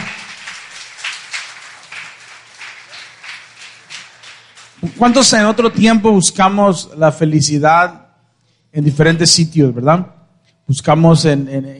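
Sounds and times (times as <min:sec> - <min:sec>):
audience applause: 0:00.0 - 0:05.6
speech: 0:04.8 - 0:08.0, 0:08.7 - 0:11.7.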